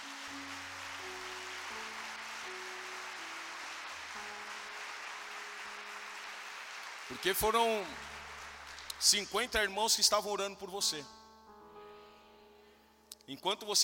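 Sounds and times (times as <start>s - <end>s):
audience applause: 0.0s - 9.7s
speech: 7.1s - 8.1s, 9.0s - 11.2s, 13.3s - 13.8s.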